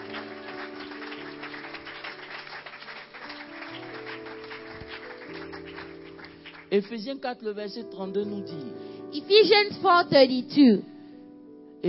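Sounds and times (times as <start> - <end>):
audience clapping: 0.0 - 6.9
sustained low keyboard chords: 0.0 - 11.8
speech: 6.7 - 10.9.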